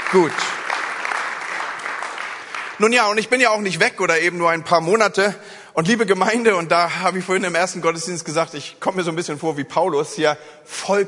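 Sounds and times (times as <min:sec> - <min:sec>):
audience applauding: 0:00.0 - 0:03.4
speech: 0:00.1 - 0:00.6, 0:02.8 - 0:11.0.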